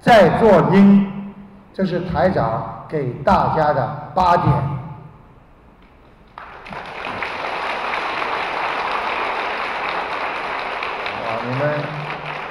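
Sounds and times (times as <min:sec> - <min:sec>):
speech: 0:00.0 - 0:01.1, 0:01.8 - 0:04.8
audience applause: 0:06.3 - 0:12.4.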